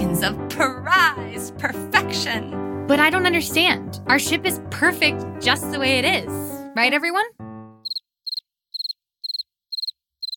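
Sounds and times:
speech: 0.2s - 7.4s
crickets chirping: 7.8s - 10.3s.

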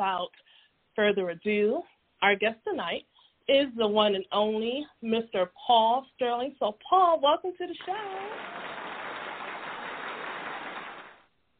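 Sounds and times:
speech: 0.0s - 8.8s
audience applause: 7.8s - 11.2s.

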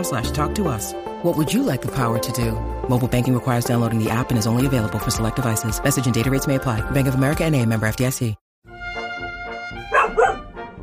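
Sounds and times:
speech: 0.0s - 8.4s
female dog barking at a corner: 9.8s - 10.6s.

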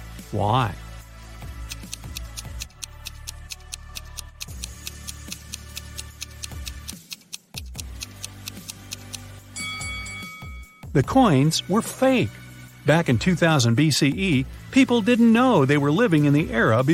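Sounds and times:
speech: 0.3s - 0.8s, 11.0s - 16.9s
clock ticking during countdown timer: 1.6s - 9.3s.

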